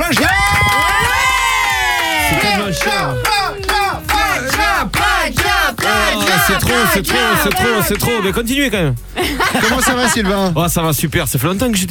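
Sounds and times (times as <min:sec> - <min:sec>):
audience applause and cheering: 0:00.0 - 0:08.4
laughter: 0:00.0 - 0:10.7
speech: 0:06.4 - 0:11.9.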